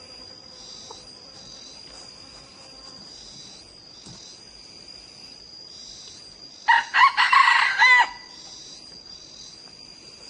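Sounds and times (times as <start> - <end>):
insect drone: 0.0 - 10.2
red junglefowl crowing: 6.7 - 8.4.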